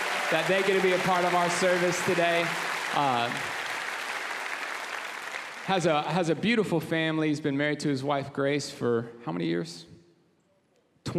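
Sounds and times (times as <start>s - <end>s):
church congregation clapping to welcome a church joining by simulcast: 0.0s - 6.4s
speech: 0.3s - 3.6s, 5.7s - 9.9s.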